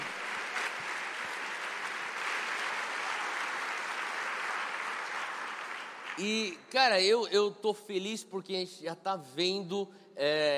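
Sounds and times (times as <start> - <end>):
audience applauding: 0.0 - 6.6
speech: 6.2 - 10.5.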